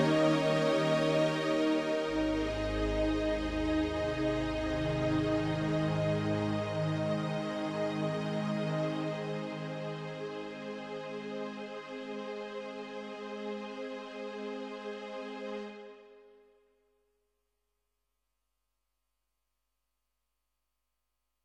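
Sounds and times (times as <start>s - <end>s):
strings: 0.0s - 16.2s.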